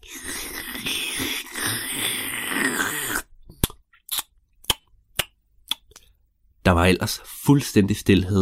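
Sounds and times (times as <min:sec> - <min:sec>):
grandmother slurping tea: 0:00.0 - 0:03.3
speech: 0:06.7 - 0:08.4.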